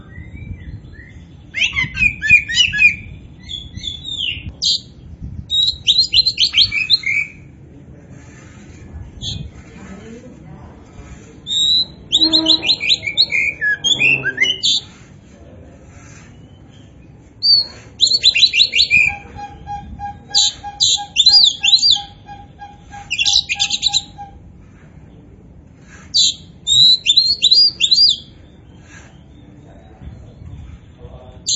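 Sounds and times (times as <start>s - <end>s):
Oriental magpie-robin song: 0.0s - 7.5s, 9.2s - 9.8s, 11.0s - 15.1s, 15.9s - 24.8s, 25.8s - 29.9s
low background hum: 0.0s - 31.5s.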